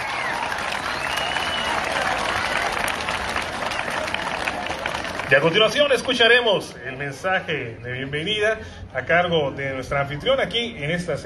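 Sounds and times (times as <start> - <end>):
faint cheering: 0.0 - 5.1
crowd applause: 0.0 - 6.2
speech: 5.3 - 11.2.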